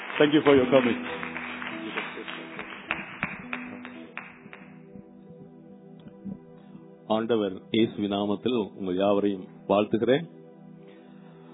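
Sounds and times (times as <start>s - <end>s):
church congregation clapping in welcome for a visiting pastor: 0.0s - 5.0s
speech: 0.2s - 1.2s, 7.1s - 10.4s
sustained tonal background: 0.8s - 11.5s.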